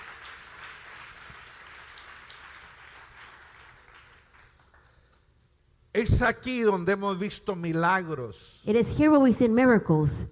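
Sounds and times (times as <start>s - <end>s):
congregation applauding during a worship service: 0.0s - 5.4s
speech: 6.0s - 10.3s.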